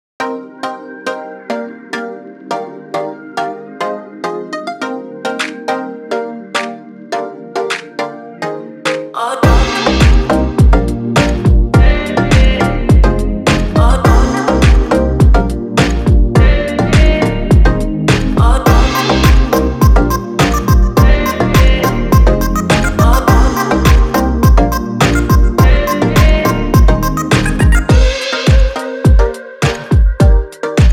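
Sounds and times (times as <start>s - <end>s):
instrumental music: 0.2s - 30.9s.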